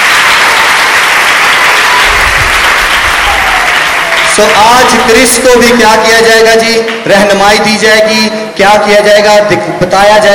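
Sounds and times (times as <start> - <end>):
audience applause: 0.0 - 5.4
speech: 4.4 - 10.3.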